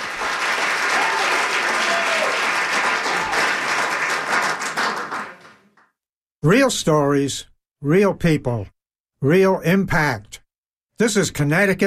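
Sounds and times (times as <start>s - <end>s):
audience applause: 0.0s - 5.8s
speech: 6.4s - 10.4s, 11.0s - 11.8s.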